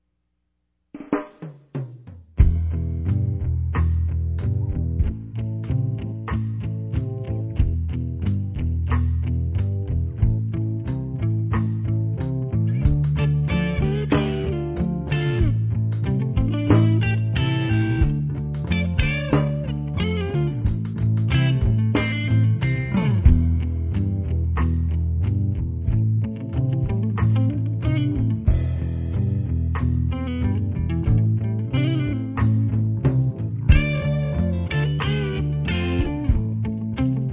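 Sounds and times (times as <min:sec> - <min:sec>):
blues drone: 0:02.4 - 0:37.3.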